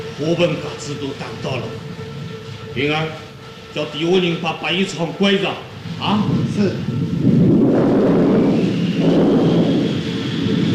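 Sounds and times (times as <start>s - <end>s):
speech: 0.2s - 2.1s, 2.8s - 7.0s
thunder before a storm: 5.9s - 10.7s.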